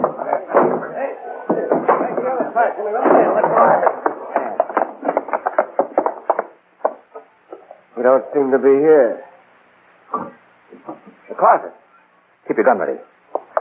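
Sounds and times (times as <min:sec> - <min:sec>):
door being forced open: 0:00.0 - 0:07.1
speech: 0:02.6 - 0:04.0, 0:08.0 - 0:09.3, 0:11.4 - 0:11.8, 0:12.5 - 0:13.1.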